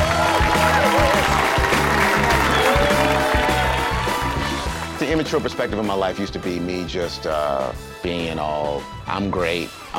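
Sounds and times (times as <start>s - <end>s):
audience applause: 0.0s - 5.4s
loud thumping music track: 0.0s - 9.1s
speech: 5.2s - 9.9s.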